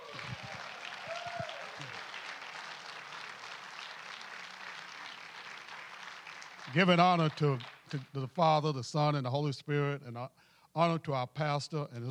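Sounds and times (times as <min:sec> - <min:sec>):
audience clapping: 0:00.0 - 0:08.5
speech: 0:06.7 - 0:12.0.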